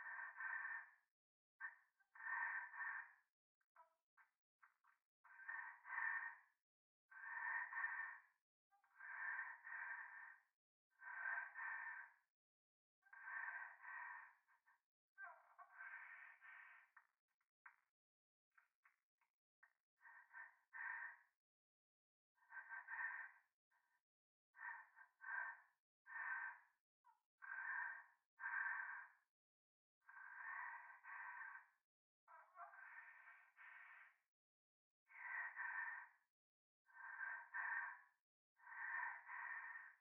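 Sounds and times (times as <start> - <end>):
close breathing in the left ear in a toilet: 0.1 - 3.3, 4.2 - 8.4, 9.0 - 12.3, 13.1 - 14.8, 15.6 - 17.9, 19.6 - 21.4, 22.4 - 24.0, 24.6 - 26.8, 27.4 - 29.3, 30.1 - 31.8, 32.8 - 34.3, 35.1 - 36.3, 36.9 - 39.9.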